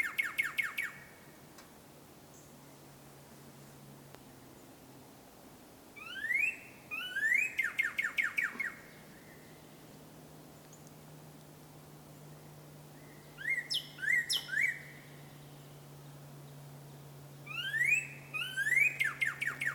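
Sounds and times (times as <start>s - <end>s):
northern cardinal whistling: 6.0s - 8.8s, 13.0s - 14.9s, 17.5s - 19.7s.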